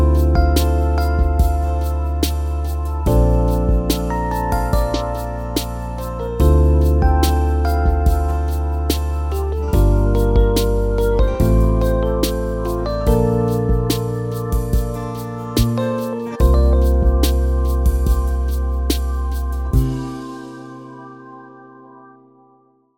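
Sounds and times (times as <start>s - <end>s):
background melody: 0.0s - 22.9s.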